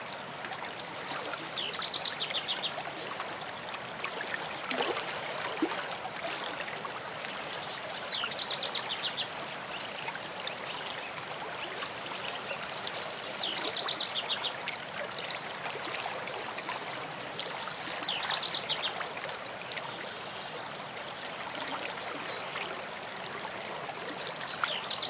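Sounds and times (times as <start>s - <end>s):
streamside songbirds: 0.6s - 5.0s, 5.6s - 25.0s.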